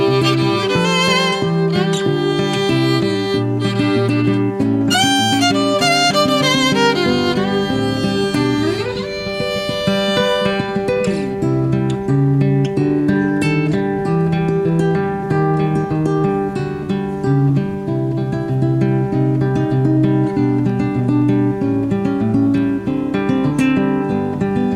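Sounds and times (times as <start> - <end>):
violin: 0.0 - 11.8
guitar: 0.0 - 24.7.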